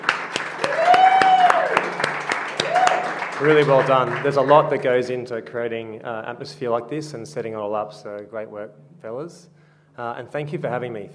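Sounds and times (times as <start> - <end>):
audience applause: 0.0 - 5.2
person cheering: 0.6 - 2.0, 2.6 - 4.8
speech: 3.4 - 11.1.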